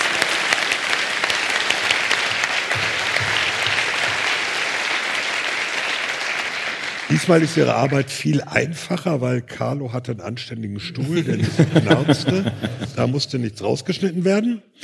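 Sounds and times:
live audience applause: 0.0s - 8.4s
speech: 7.2s - 14.8s
laughter: 10.8s - 13.3s.

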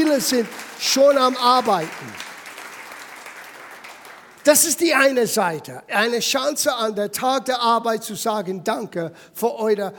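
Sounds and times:
audience applause: 0.0s - 4.7s
speech: 0.2s - 2.2s, 4.4s - 9.9s.

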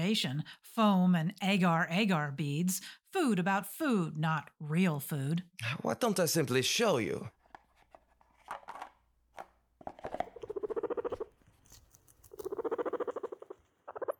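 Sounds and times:
speech: 0.0s - 7.4s
guinea pig squeaking: 10.4s - 14.1s.

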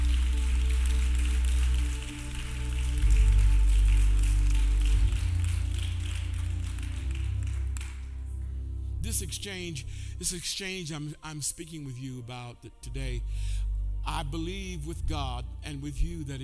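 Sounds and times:
audience clapping hands: 0.0s - 8.6s
speech: 9.2s - 16.4s.

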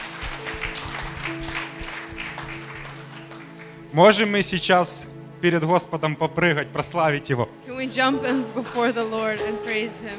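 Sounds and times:
audience clapping hands: 0.0s - 4.6s, 8.3s - 10.1s
speech: 3.9s - 10.1s.

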